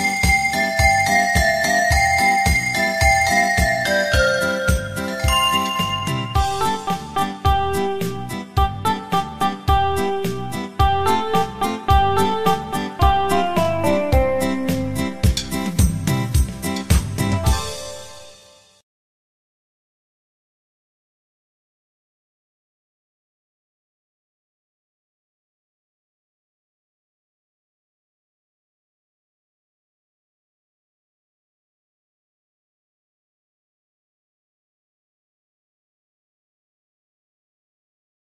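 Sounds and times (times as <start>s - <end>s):
music beat: 0.0s - 18.6s.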